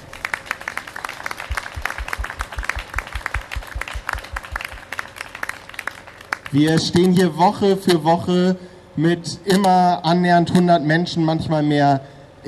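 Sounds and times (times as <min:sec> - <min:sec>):
audience applause: 0:00.0 - 0:06.5
speech: 0:06.5 - 0:12.4.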